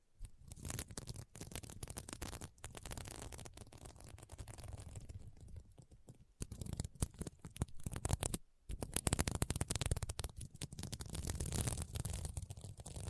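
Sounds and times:
scratching on a sequin mermaid pillow: 0.4s - 13.0s.

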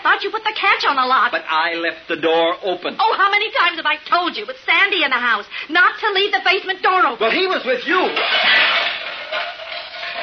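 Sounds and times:
speech: 0.2s - 8.9s
pots and pans pulled from cupboard: 7.4s - 10.2s.

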